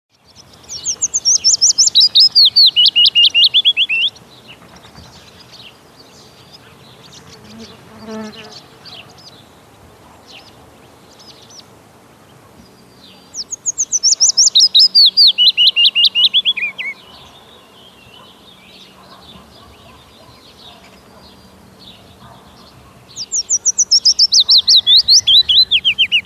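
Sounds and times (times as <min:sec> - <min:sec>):
willow warbler singing liquid runs of whistled notes: 0:00.1 - 0:26.2.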